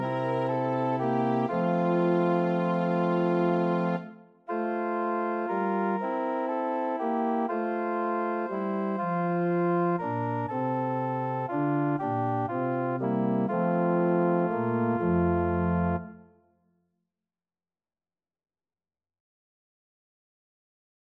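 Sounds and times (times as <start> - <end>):
organ: 0.0 - 16.1.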